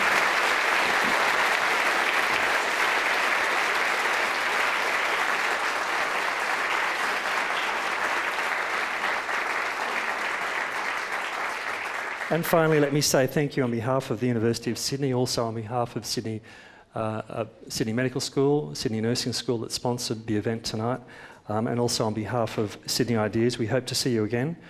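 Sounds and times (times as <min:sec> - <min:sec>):
audience applause: 0:00.0 - 0:13.0
speech: 0:12.3 - 0:24.6.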